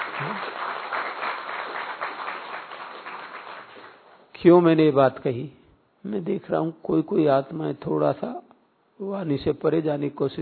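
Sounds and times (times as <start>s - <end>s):
crowd applauding: 0.0s - 4.0s
speech: 0.2s - 0.7s, 4.4s - 8.4s, 9.0s - 10.4s.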